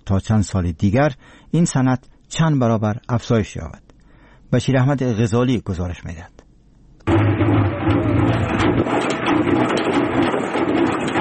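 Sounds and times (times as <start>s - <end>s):
speech: 0.1s - 3.8s, 4.5s - 6.4s
honey extractor machine running in the high mountains of Andarab: 7.1s - 11.1s.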